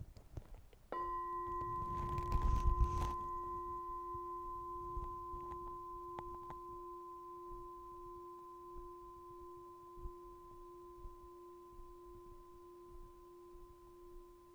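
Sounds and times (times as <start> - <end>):
bell rung to start listening exercise: 1.0 - 10.8.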